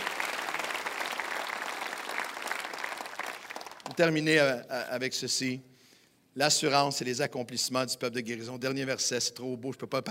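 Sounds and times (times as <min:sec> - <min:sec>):
audience clapping at a religious service: 0:00.0 - 0:04.3
speech: 0:04.0 - 0:05.7, 0:06.4 - 0:10.1.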